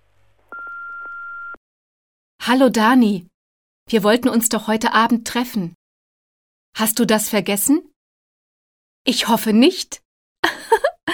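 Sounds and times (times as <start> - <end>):
telephone answering machine electronic beep: 0.5 - 1.6
speech: 2.4 - 3.3, 3.9 - 5.8, 6.8 - 7.9, 9.0 - 10.0, 10.7 - 10.9.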